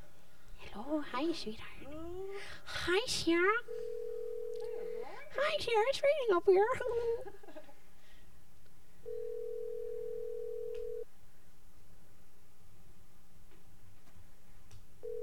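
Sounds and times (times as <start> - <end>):
speech: 1.0 - 2.0, 2.6 - 3.8, 5.4 - 7.5
telephone ringing on a call: 3.7 - 4.7, 9.1 - 11.0, 15.0 - 15.2.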